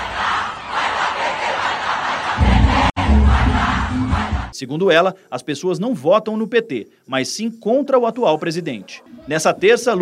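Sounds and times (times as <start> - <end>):
large crowd chanting a political battle cry in unison: 0.0 - 4.6
speech: 4.6 - 10.0.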